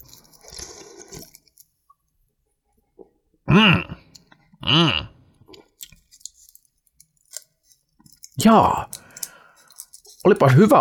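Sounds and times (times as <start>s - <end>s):
slurping sip of a shaken Red Bull energy drink: 0.0s - 1.4s
speech: 3.5s - 3.8s, 8.4s - 8.9s, 10.3s - 10.7s.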